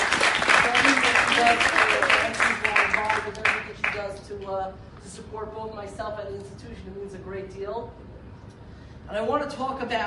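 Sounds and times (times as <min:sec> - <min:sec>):
round of applause: 0:00.0 - 0:04.0
speech: 0:01.5 - 0:01.8, 0:04.5 - 0:08.1, 0:09.1 - 0:10.0.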